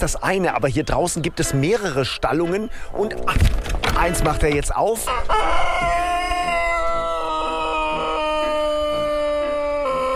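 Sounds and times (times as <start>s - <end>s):
speech: 0.0s - 5.9s
long-crowing Sandžak rooster crowing: 5.0s - 10.1s.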